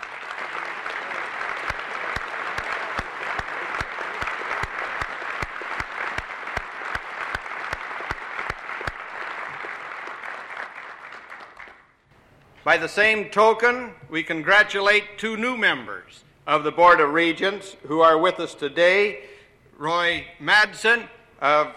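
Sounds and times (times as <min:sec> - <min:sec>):
round of applause: 0:00.0 - 0:12.1
speech: 0:12.7 - 0:21.7.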